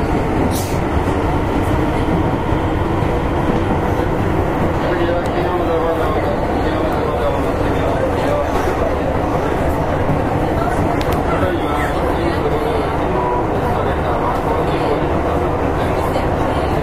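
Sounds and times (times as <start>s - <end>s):
Keihan 6000 series express train running: 0.0s - 16.8s.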